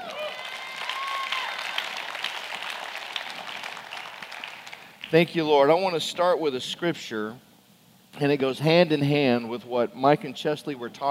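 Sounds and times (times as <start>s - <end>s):
audience clapping: 0.0s - 5.2s
speech: 5.1s - 7.5s, 8.2s - 11.0s.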